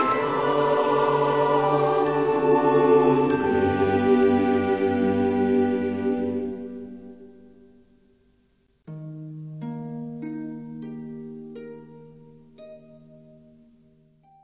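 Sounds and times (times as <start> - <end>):
orchestra playing hymns: 0.0 - 6.6
choir singing hymns: 0.0 - 7.5.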